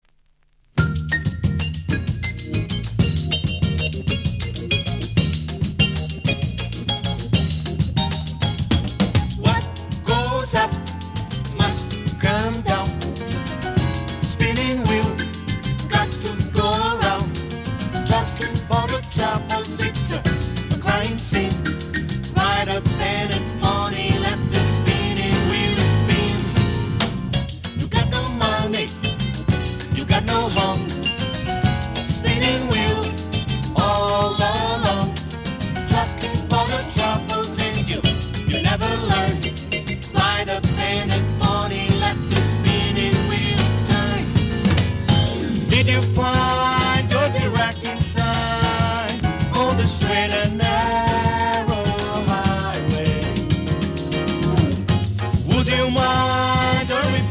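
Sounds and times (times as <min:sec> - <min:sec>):
bossa nova music: 0:00.8 - 0:57.3.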